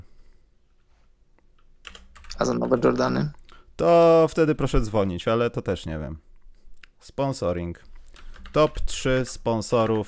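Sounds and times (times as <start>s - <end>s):
typing on a computer keyboard: 1.6s - 2.4s, 8.0s - 8.9s, 9.7s - 10.0s
speech: 2.4s - 6.3s, 7.0s - 7.9s, 8.5s - 10.0s.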